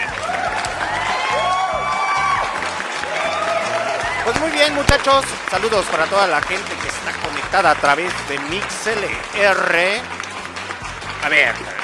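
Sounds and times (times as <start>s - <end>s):
applause and cheering: 0.0s - 11.8s
speech: 4.4s - 10.2s, 11.2s - 11.8s.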